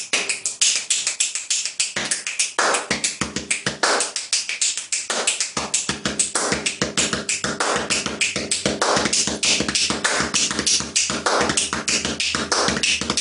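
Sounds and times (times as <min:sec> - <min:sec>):
finger snaps: 0:00.0 - 0:13.2
hand claps: 0:00.0 - 0:13.2.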